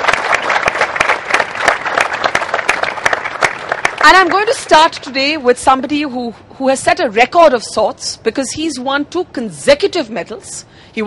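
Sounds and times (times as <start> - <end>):
audience applause: 0.0 - 4.6
speech: 4.0 - 11.0.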